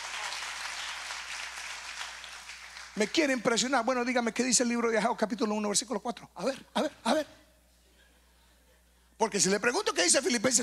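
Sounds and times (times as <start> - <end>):
congregation applause during a Spanish-language church sermon: 0.0 - 3.0
speech: 3.0 - 7.4, 9.2 - 10.6.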